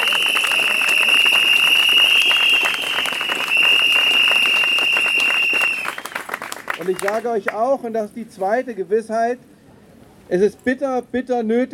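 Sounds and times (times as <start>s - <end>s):
shrill whistle-like tone: 0.0s - 6.2s
crowd applause at a protest rally: 0.0s - 7.3s
speech: 6.9s - 9.5s, 10.3s - 11.7s.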